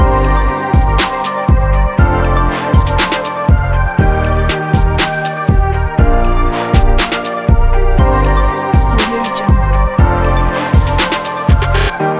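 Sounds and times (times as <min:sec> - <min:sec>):
hip hop background drum kit: 0:00.0 - 0:12.0.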